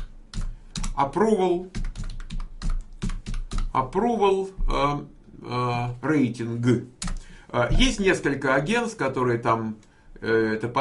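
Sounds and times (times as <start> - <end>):
computer keyboard typing a web search: 0.0 - 3.8
speech: 1.0 - 1.8, 3.7 - 10.7.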